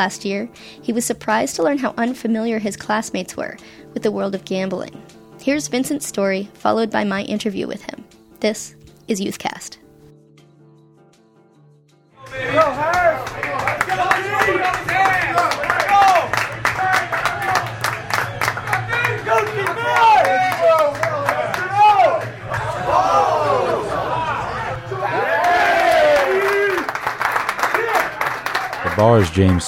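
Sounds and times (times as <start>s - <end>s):
speech: 0.0s - 9.8s, 29.0s - 29.6s
sports bar crowd cheering and booing: 12.2s - 29.6s.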